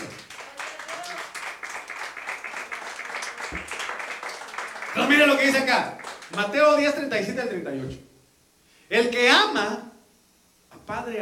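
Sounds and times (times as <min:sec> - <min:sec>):
audience clapping: 0:00.0 - 0:06.9
speech: 0:05.0 - 0:08.1, 0:08.9 - 0:09.9, 0:10.9 - 0:11.2.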